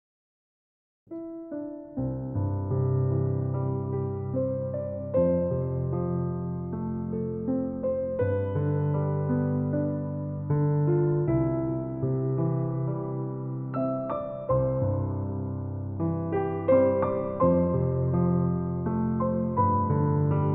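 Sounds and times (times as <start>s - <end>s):
piano improvisation: 1.1s - 20.5s.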